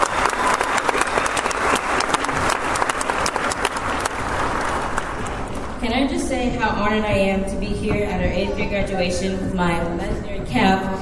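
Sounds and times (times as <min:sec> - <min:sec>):
8th grade graduation audience applause: 0:00.0 - 0:05.8
speech: 0:06.4 - 0:11.0.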